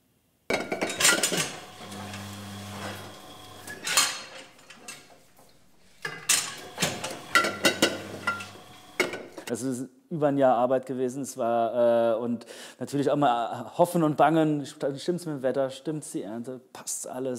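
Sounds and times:
wine bottles clinking at a winery on a farm estate: 0.5 - 9.5
low mechanical hum: 0.6 - 9.5
speech: 9.5 - 17.3.

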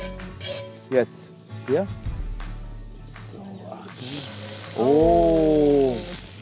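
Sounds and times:
meat sizzling in a pan beside onions: 0.3 - 6.3
speech: 0.9 - 2.1, 4.8 - 5.5.

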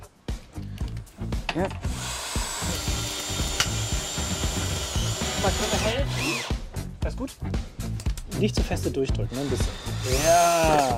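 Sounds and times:
speech: 1.6 - 2.2, 5.4 - 7.7, 8.4 - 10.9
power drill driving a screw into a wooden board: 1.9 - 6.6, 9.3 - 10.9.

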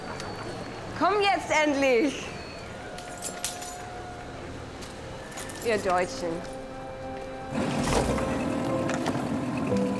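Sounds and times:
speech: 1.0 - 2.3, 5.6 - 6.6
boat moving on water: 7.5 - 9.9.

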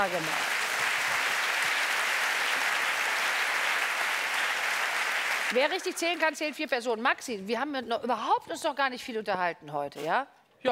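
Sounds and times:
speech: 0.0 - 0.5, 5.5 - 10.7
applause: 0.0 - 6.6.

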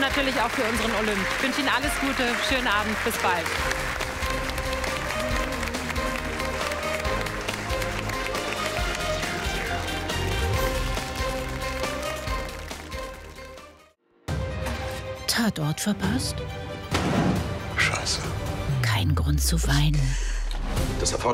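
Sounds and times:
studio audience applause: 0.0 - 13.8
music: 0.0 - 21.3
speech: 0.1 - 4.0, 15.4 - 17.3, 19.0 - 20.3, 21.0 - 21.3.

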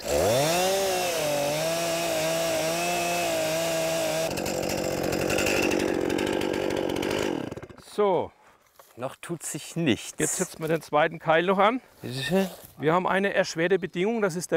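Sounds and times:
chainsaw cutting while felling a tree: 0.0 - 7.9
speech: 8.0 - 8.4, 9.0 - 14.5.

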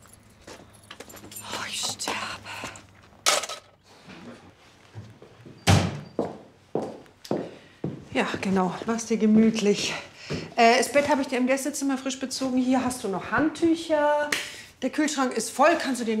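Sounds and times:
keys jingling: 0.0 - 2.4
heavy door shutting: 5.6 - 6.2
speech: 8.2 - 16.1.

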